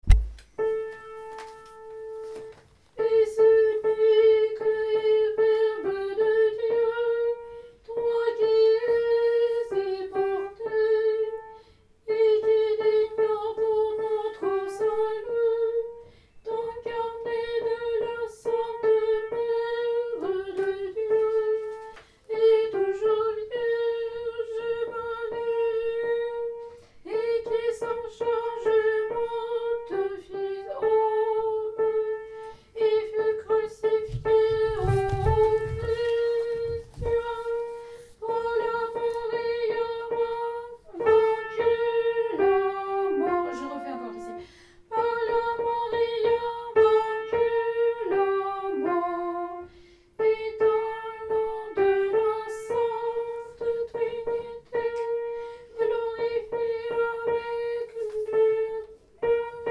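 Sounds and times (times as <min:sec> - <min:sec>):
soprano singing: 0:00.6 - 0:59.7.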